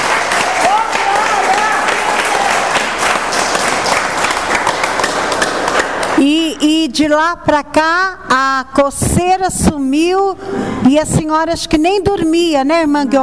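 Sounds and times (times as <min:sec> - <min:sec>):
audience applause: 0:00.0 - 0:06.2
speech: 0:06.2 - 0:13.2.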